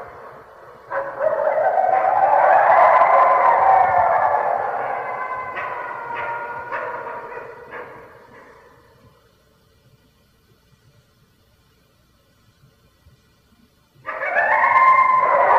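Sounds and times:
red wolf howling: 0.0 - 8.6, 14.1 - 15.5.

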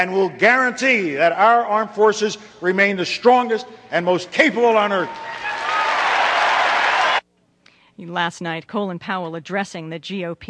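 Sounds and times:
speech: 0.0 - 5.4, 8.0 - 10.4
Republican convention audience applauding a speech on the military: 4.9 - 7.2.

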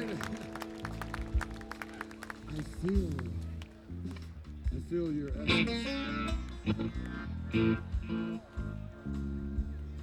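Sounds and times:
scattered audience clapping: 0.0 - 4.3, 6.4 - 7.2
speech: 2.6 - 3.5, 4.1 - 9.2.

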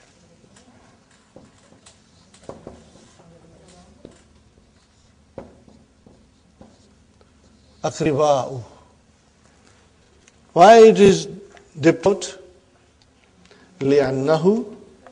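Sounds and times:
marker or chalk writing on a board: 0.8 - 7.9
speech: 7.8 - 8.7, 10.6 - 12.4, 13.8 - 14.7.

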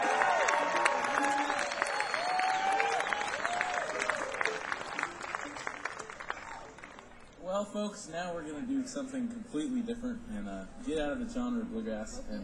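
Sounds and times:
audience applause: 0.0 - 7.4
speech: 7.7 - 12.4.

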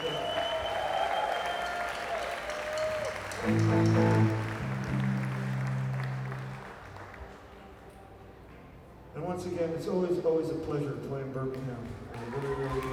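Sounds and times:
audience applause: 0.0 - 7.7, 12.1 - 12.9
speech: 3.4 - 4.4, 9.4 - 12.9.

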